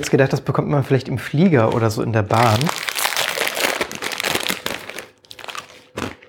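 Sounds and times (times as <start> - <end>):
speech: 0.0 - 2.9
tiny snack bag crinkling: 1.7 - 6.2.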